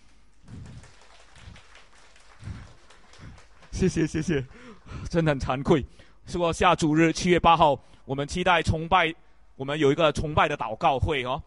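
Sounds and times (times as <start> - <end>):
audience applause: 0.5 - 5.0
speech: 3.8 - 11.4.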